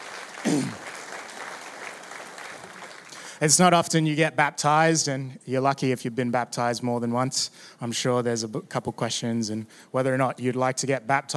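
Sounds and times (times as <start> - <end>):
audience applause: 0.0 - 3.4
speech: 0.4 - 0.8, 3.4 - 11.3.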